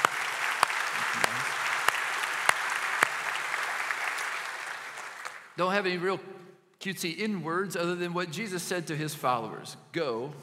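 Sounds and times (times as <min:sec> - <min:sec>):
round of applause: 0:00.0 - 0:05.6
speech: 0:05.6 - 0:10.4.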